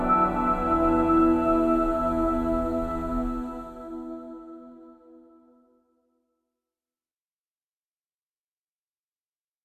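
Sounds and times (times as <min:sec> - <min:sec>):
ambient music: 0:00.0 - 0:05.6.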